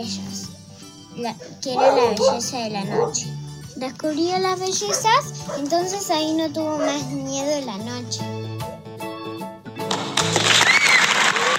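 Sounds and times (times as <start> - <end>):
speech: 0.0 - 0.5, 1.2 - 8.5
applause: 9.8 - 11.5.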